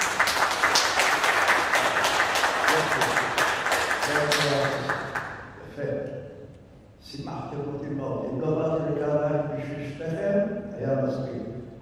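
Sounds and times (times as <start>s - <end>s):
audience clapping hands: 0.0s - 5.6s
speech: 7.1s - 11.5s.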